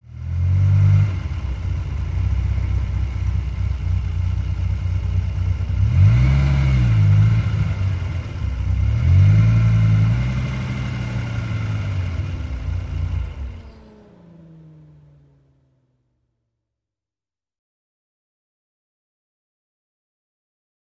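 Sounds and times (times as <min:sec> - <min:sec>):
sports car accelerating in forward gear: 0:00.1 - 0:16.2.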